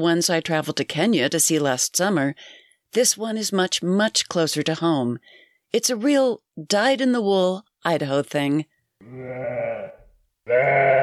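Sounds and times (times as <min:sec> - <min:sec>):
speech: 0:00.0 - 0:11.0
sheep bleating during spring migration across Idaho: 0:09.0 - 0:11.0.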